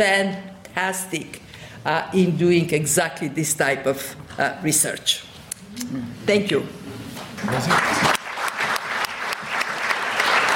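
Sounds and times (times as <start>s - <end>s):
speech: 0.0s - 6.8s, 7.4s - 8.1s
audience applause: 7.4s - 10.5s.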